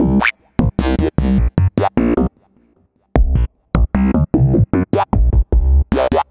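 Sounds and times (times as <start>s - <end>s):
synth bass: 0.0s - 2.3s, 3.2s - 6.2s.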